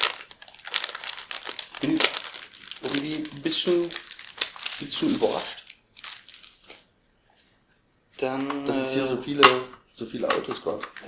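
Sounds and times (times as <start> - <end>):
crinkling packaging while unwrapping: 0.0 - 6.9
speech: 3.4 - 4.0, 4.8 - 5.6, 8.2 - 11.0.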